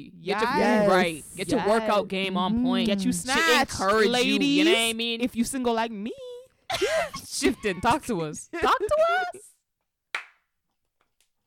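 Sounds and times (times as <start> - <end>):
speech: 0.0 - 9.5
hands clapping: 10.1 - 10.4.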